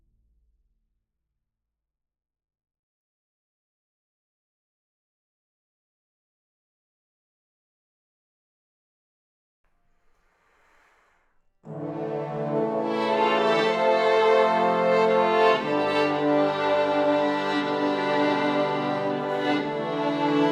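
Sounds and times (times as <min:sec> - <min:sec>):
classical cinematic underscore: 0:11.7 - 0:20.5.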